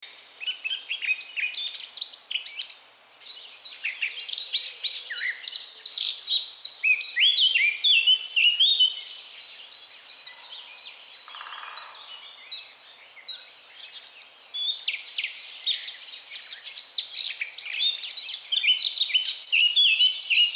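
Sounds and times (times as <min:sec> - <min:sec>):
songbirds singing in a forest: 0:00.0 - 0:20.5.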